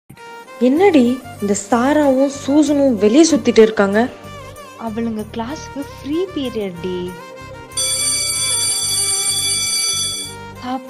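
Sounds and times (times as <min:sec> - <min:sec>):
speech: 0:00.1 - 0:07.3, 0:10.6 - 0:10.8
school bell ringing: 0:07.8 - 0:10.4.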